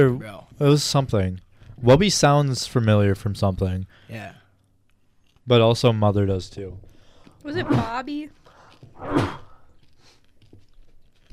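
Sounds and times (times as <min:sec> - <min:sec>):
speech: 0:00.0 - 0:04.4, 0:05.5 - 0:08.4, 0:09.0 - 0:09.4
loud sneeze: 0:07.5 - 0:08.0, 0:09.0 - 0:09.6.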